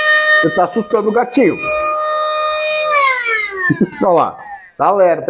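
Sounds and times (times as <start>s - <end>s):
vacuum cleaner running: 0.2s - 4.4s
speech: 0.4s - 1.7s, 3.7s - 5.2s.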